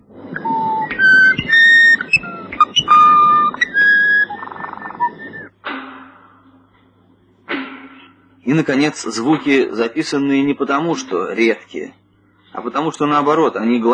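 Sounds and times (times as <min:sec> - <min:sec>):
Amazonian nightingale singing: 0:00.4 - 0:05.5
speech: 0:08.5 - 0:13.9.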